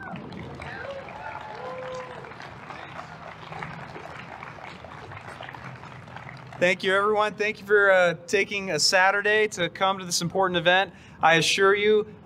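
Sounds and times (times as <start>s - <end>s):
crowd applause at an anti-abortion rally in Colorado: 0.0s - 7.2s
speech: 6.6s - 12.1s.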